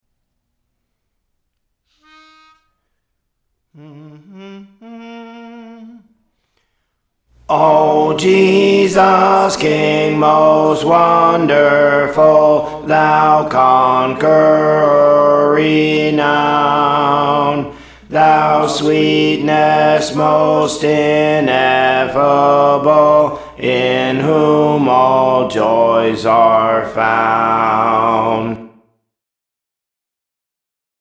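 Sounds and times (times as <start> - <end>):
alto voice singing songs: 3.8 - 6.1, 7.4 - 28.8.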